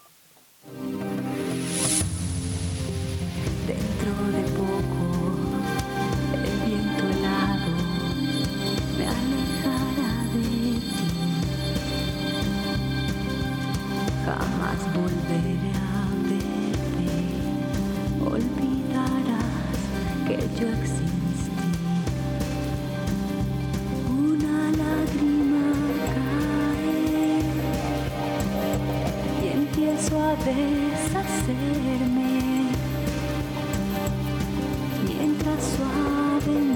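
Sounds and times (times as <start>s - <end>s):
music: 0.6s - 36.7s.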